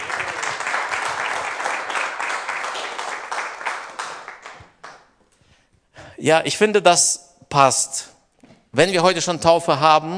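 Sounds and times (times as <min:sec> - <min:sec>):
crowd applauding: 0:00.0 - 0:05.1
speech: 0:06.2 - 0:08.1, 0:08.7 - 0:10.1.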